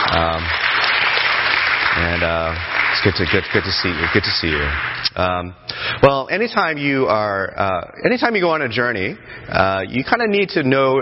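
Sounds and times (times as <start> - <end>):
church congregation applauding to welcome a pastor back from sabbatical: 0.0 - 5.2
speech: 2.0 - 10.9.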